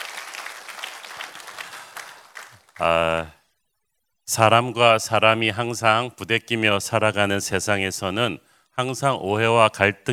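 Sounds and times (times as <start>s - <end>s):
audience applause: 0.0s - 2.9s
speech: 2.8s - 3.4s, 4.3s - 10.1s.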